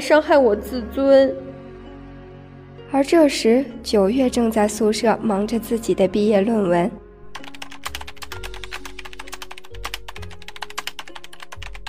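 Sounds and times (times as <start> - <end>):
speech: 0.0 - 1.4, 2.9 - 7.0
typing on a computer keyboard: 7.4 - 11.8.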